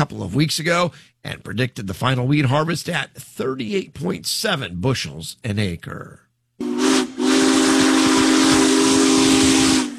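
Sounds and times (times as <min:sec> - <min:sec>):
speech: 0:00.0 - 0:06.2
steam locomotive whistle: 0:06.6 - 0:09.9.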